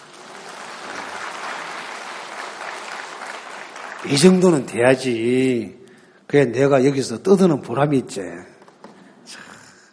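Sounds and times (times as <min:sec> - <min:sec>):
audience applause: 0:00.0 - 0:04.8
speech: 0:04.0 - 0:08.5.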